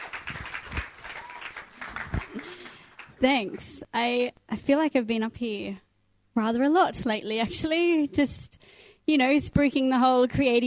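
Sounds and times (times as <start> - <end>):
audience clapping: 0.0 - 3.2
speech: 3.2 - 5.8, 6.4 - 8.5, 9.1 - 10.6.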